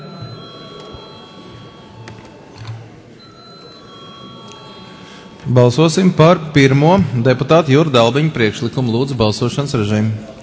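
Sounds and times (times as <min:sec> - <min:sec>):
parliament chamber bell ringing before vote: 0:00.0 - 0:02.0, 0:03.2 - 0:05.8
speech: 0:05.5 - 0:10.4.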